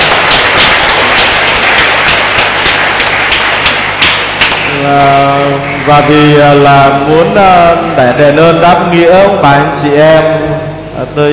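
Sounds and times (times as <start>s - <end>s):
big round of applause: 0.0s - 7.0s
speech: 4.9s - 11.3s.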